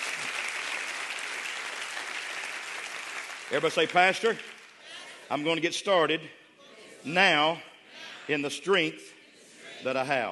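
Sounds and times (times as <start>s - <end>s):
audience clapping hands: 0.0s - 4.9s
speech: 3.5s - 4.6s, 5.3s - 6.4s, 7.0s - 7.7s, 8.3s - 9.1s, 9.8s - 10.3s.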